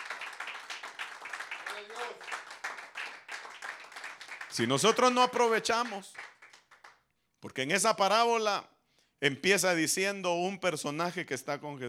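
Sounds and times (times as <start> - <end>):
audience clapping hands: 0.0 - 7.1
speech: 1.8 - 2.5, 4.6 - 6.2, 7.5 - 11.8.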